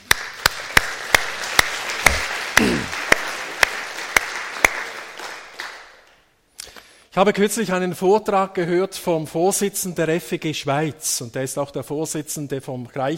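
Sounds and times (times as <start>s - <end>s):
audience applause: 0.0s - 6.1s
speech: 7.2s - 13.1s.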